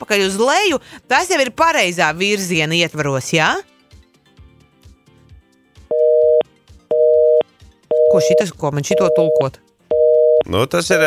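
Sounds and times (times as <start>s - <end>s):
speech: 0.0s - 3.7s, 8.2s - 9.7s, 10.4s - 11.0s
telephone busy signal on failed call: 5.9s - 10.5s.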